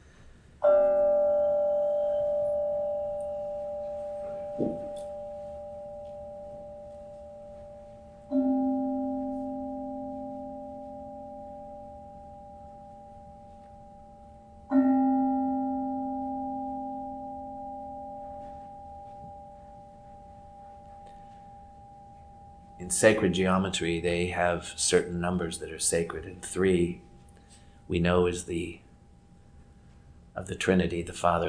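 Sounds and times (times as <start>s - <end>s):
meditation bell ringing: 0.0s - 30.2s
speech: 22.9s - 27.0s, 27.9s - 28.8s, 30.4s - 31.4s.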